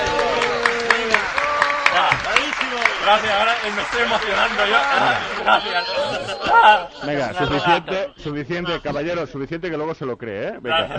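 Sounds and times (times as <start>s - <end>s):
small crowd applauding: 0.0s - 6.4s
laughter: 0.1s - 8.9s
speech: 3.1s - 10.9s
several voices talking and calling out loudly: 4.2s - 9.1s.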